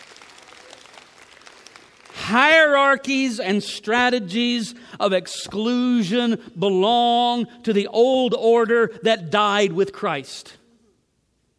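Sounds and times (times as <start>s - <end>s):
many hands clapping: 0.0s - 2.2s
speech: 2.3s - 10.6s.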